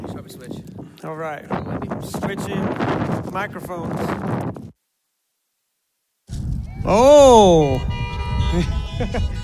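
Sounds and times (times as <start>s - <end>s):
speech: 1.1s - 4.7s, 6.9s - 7.9s, 8.5s - 9.3s
car horns honking: 7.5s - 9.4s.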